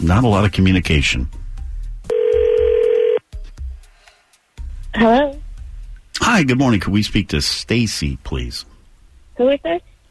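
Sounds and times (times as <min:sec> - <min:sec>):
speech: 0:00.0 - 0:01.4, 0:05.0 - 0:05.4, 0:06.3 - 0:08.7, 0:09.4 - 0:09.9
ringback tone on an outgoing phone call: 0:02.1 - 0:03.2.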